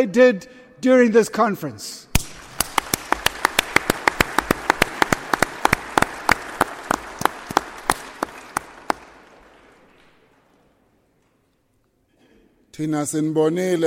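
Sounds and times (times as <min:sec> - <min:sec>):
speech: 0:00.0 - 0:02.1, 0:12.8 - 0:13.8
audience applause: 0:02.2 - 0:10.7.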